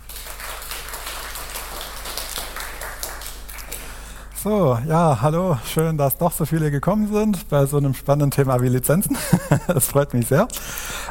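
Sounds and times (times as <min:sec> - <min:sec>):
audience applause: 0:00.0 - 0:04.3
speech: 0:04.4 - 0:11.0.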